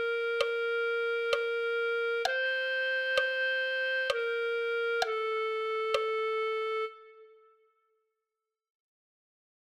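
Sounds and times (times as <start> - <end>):
clarinet: 0.0 - 7.8.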